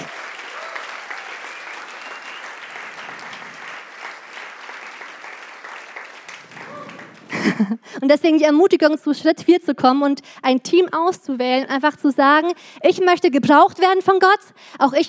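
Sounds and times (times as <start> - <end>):
audience applause: 0.0 - 7.8
laughter: 6.7 - 7.8
speech: 7.6 - 15.0.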